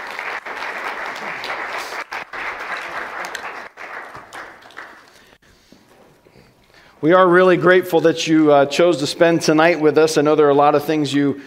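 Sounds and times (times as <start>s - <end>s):
audience round of applause: 0.0s - 5.4s
speech: 7.0s - 11.4s.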